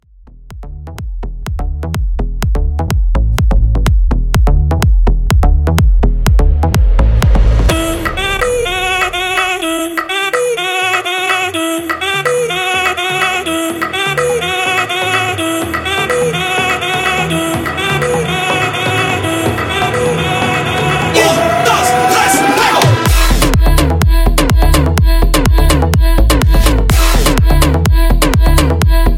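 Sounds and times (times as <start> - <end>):
tribal house music at 125 BPM: 0.0 - 29.1.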